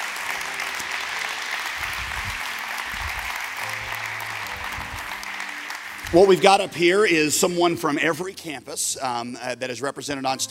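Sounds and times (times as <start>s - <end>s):
church audience applause welcoming a group on stage: 0.0s - 7.7s
speech: 6.1s - 10.4s.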